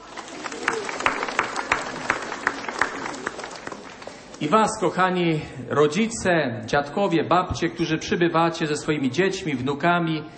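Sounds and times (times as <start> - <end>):
audience applause: 0.0 - 5.0
speech: 4.4 - 10.3.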